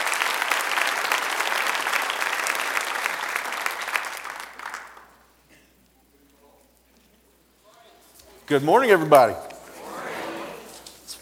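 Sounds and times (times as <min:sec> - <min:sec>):
audience applauding: 0:00.0 - 0:05.4
speech: 0:08.5 - 0:09.5.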